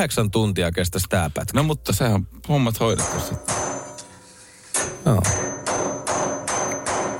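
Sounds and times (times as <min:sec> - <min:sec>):
speech: 0:00.0 - 0:03.8, 0:05.0 - 0:05.5
hammer striking a metal pipe: 0:02.9 - 0:07.1.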